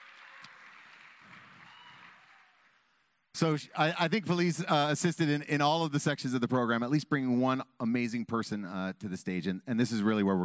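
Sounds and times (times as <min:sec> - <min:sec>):
round of applause: 0:00.0 - 0:03.3
speech: 0:03.4 - 0:10.4.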